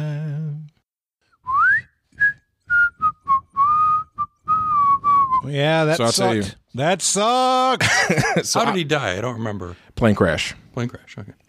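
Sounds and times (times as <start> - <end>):
whistled melody of a soul song: 1.3 - 5.5
speech: 5.5 - 11.4
laughter: 7.8 - 8.9.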